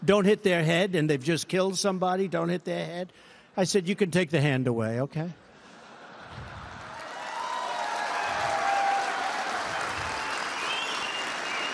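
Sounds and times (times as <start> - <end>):
speech: 0.1 - 5.4
uniformed police officers laughing: 5.6 - 7.2
extended applause from uniformed police officers: 6.5 - 11.7
uniformed police officers hollering: 6.9 - 10.8.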